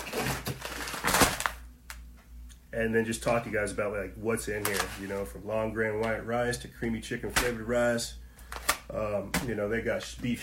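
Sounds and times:
food storage container being ripped open: 0:00.0 - 0:01.6
speech: 0:02.8 - 0:08.2, 0:08.9 - 0:10.4.

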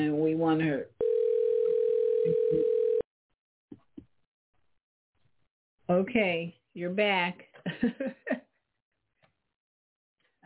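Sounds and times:
speech: 0:00.0 - 0:01.0, 0:05.9 - 0:08.4
telephone dial tone while calling back: 0:01.0 - 0:03.0.

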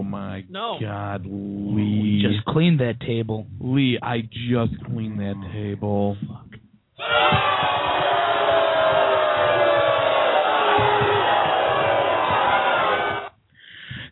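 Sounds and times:
speech: 0:00.1 - 0:06.4, 0:07.0 - 0:08.2
studio audience groaning in disapproval: 0:07.0 - 0:13.3.

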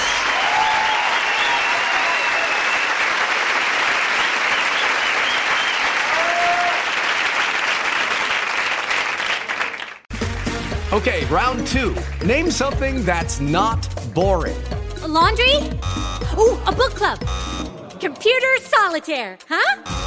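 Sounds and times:
faint whistles or cheers: 0:00.0 - 0:03.3, 0:04.1 - 0:07.0
loud sustained applause from a large audience: 0:00.0 - 0:11.2
speech: 0:11.0 - 0:20.0.

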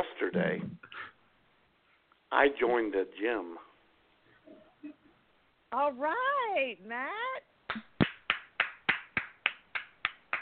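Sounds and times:
speech: 0:00.3 - 0:00.8, 0:02.3 - 0:03.7, 0:05.7 - 0:07.8
hand clapping: 0:07.7 - 0:10.4.

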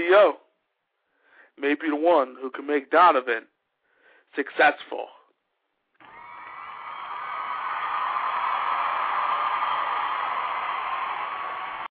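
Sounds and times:
speech: 0:00.0 - 0:00.4, 0:01.6 - 0:03.5, 0:04.3 - 0:05.2
crowd cheering: 0:06.0 - 0:11.9.

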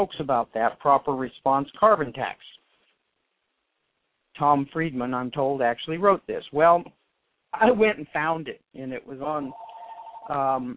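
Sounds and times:
speech: 0:00.0 - 0:02.6, 0:04.4 - 0:10.7
telephone ringing: 0:09.5 - 0:10.4.

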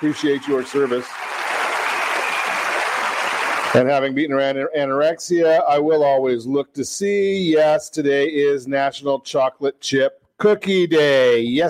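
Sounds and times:
speech: 0:00.0 - 0:01.4, 0:03.7 - 0:11.6
applause sound effect: 0:00.0 - 0:03.9.

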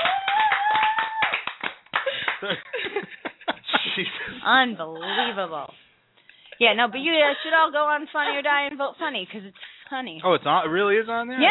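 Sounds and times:
people cheering and whooping: 0:00.0 - 0:02.4
audience applause: 0:00.0 - 0:02.6
speech: 0:02.4 - 0:02.8, 0:04.4 - 0:05.8, 0:06.6 - 0:11.4.

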